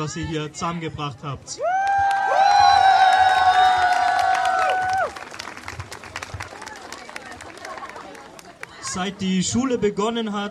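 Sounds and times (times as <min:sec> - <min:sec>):
speech: 0:00.0 - 0:02.0, 0:08.9 - 0:10.4
crowd applause and cheering: 0:01.6 - 0:08.9.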